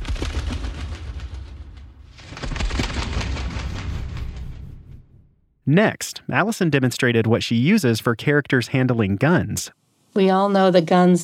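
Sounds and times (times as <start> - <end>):
Foley moth wings made with toilet paper: 0.0 - 4.7
speech: 5.7 - 11.2.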